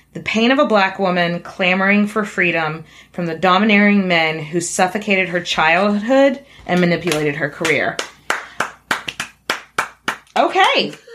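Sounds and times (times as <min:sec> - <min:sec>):
speech: 0:00.2 - 0:08.1, 0:10.8 - 0:11.0
clapping: 0:06.8 - 0:11.1.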